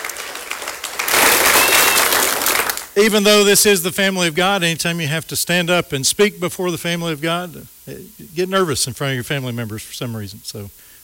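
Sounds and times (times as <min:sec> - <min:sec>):
audience applauding: 0:00.0 - 0:02.9
speech: 0:03.0 - 0:10.9.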